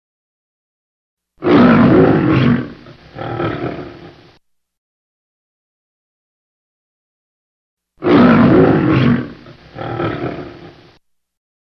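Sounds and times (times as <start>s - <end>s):
lion roaring: 1.4s - 4.3s, 8.0s - 11.0s.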